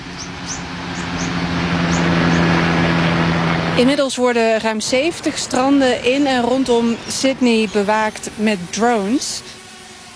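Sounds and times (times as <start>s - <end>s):
helicopter flying past: 0.0s - 10.1s
speech: 3.8s - 9.6s.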